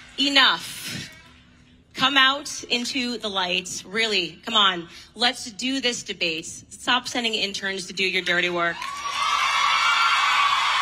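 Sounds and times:
speech: 0.2 - 1.0, 2.0 - 9.2
crowd cheering: 8.8 - 10.8.

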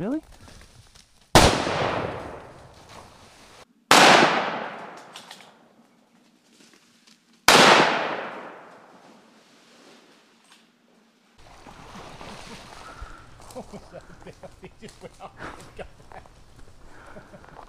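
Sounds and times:
rifle shots at a feral pig: 1.4 - 2.7, 3.9 - 5.5, 7.5 - 9.0
laughter: 12.2 - 17.6.

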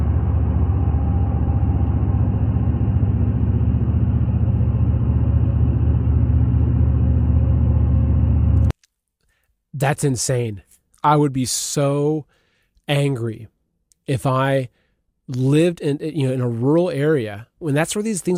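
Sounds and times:
data center low roar and hum at night: 0.0 - 8.7
speech: 9.8 - 13.5, 14.1 - 18.3.

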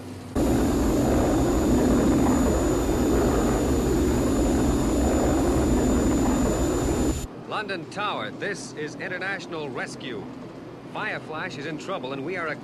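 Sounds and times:
Thunderbird 1 jet-like roar at high speed: 0.4 - 7.3
thin high whine: 0.4 - 7.3
speech: 7.6 - 12.6.

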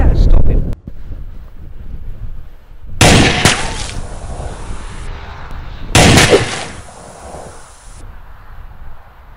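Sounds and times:
semi-automatic pistol gunshots: 3.0 - 4.0, 5.9 - 7.1.

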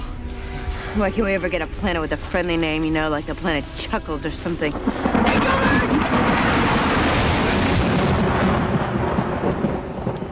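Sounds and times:
speech: 1.0 - 6.5
thunder from a lightning strike: 4.7 - 10.3.

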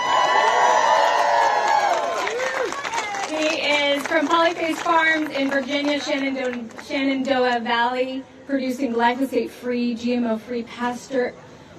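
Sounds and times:
audience cheering: 0.0 - 3.3
audience clapping: 0.0 - 7.0
speech: 4.1 - 11.4.

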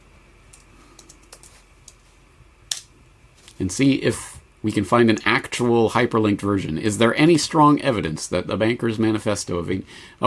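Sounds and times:
typing a search query on a computer keyboard: 0.5 - 2.0
speech: 3.6 - 10.2.

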